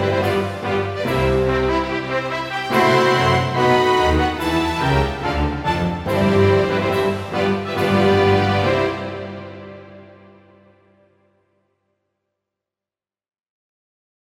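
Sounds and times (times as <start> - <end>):
wedding march music: 0.0 - 10.7.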